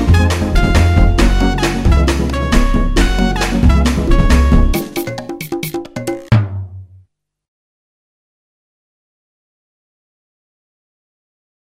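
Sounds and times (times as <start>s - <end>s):
blues music: 0.0s - 6.5s.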